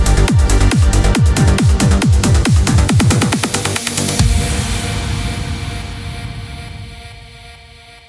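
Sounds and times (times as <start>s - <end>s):
trance kick drums: 0.0s - 8.0s.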